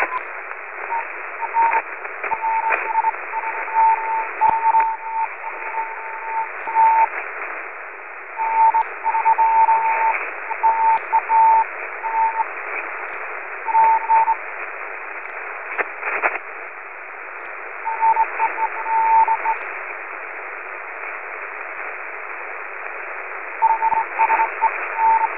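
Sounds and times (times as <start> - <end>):
morse code beeps: 0.0 - 0.3, 0.9 - 7.1, 8.4 - 12.5, 13.7 - 14.4, 17.8 - 19.6, 23.6 - 25.3.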